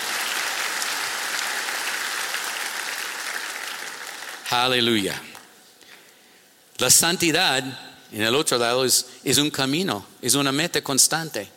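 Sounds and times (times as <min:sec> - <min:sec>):
audience applause: 0:00.0 - 0:04.5
speech: 0:04.5 - 0:05.3, 0:06.8 - 0:11.5.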